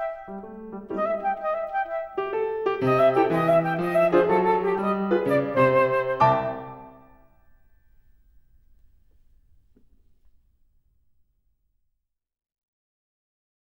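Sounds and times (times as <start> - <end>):
flute performance: 0.0 - 7.5.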